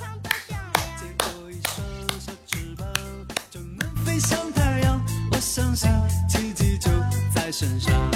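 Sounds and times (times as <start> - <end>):
steady rhythmic musical backing with bass notes: 0.0 - 8.1
sparse hand claps made by the host: 0.2 - 4.4.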